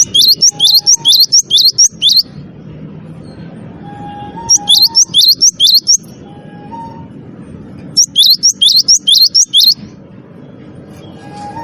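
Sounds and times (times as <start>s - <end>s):
bird chirping song: 0.0s - 2.4s, 4.2s - 6.2s, 7.9s - 11.6s.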